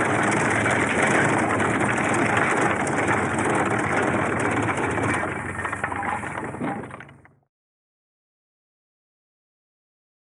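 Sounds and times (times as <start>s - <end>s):
sheaf binding machine: 0.0s - 7.4s.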